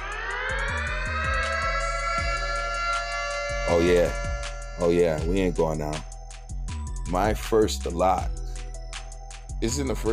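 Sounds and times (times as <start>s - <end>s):
siren sound effect: 0.0s - 6.6s
low rhythmic thumps: 0.0s - 10.1s
speech: 3.7s - 6.1s, 7.1s - 8.4s, 9.6s - 10.1s.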